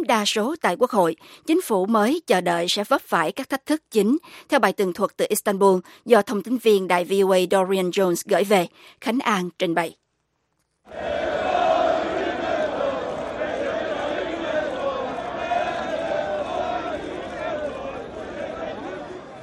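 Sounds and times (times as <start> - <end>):
speech: 0.0 - 10.0, 10.9 - 11.5
AKP supporters celebrating in the streets of Istanbul: 10.9 - 19.4.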